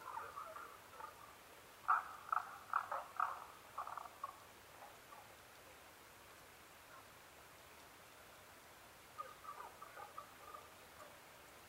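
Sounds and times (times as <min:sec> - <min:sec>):
Tago's brown frog croaking: 0:00.0 - 0:05.3, 0:09.2 - 0:11.1.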